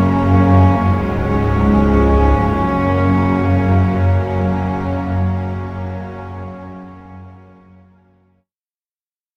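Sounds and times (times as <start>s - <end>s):
underscore synth pad: 0.0s - 7.4s.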